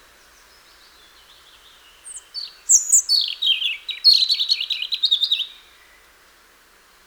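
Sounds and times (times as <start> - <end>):
European robin singing: 1.4 - 5.6.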